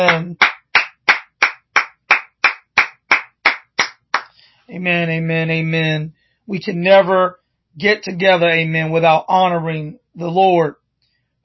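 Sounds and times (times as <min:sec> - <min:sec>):
speech: 0:00.0 - 0:00.5, 0:04.7 - 0:10.8
audience hand clapping: 0:00.0 - 0:04.3.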